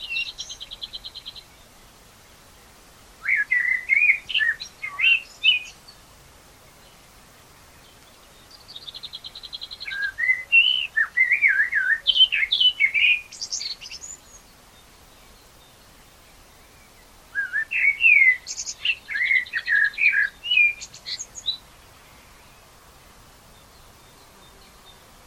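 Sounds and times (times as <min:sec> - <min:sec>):
common blackbird song: 0:00.0 - 0:22.8, 0:23.4 - 0:25.2.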